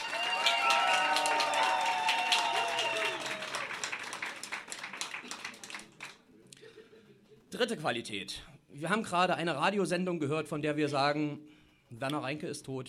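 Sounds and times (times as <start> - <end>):
audience applause: 0.0 - 6.3
speech: 7.5 - 12.8.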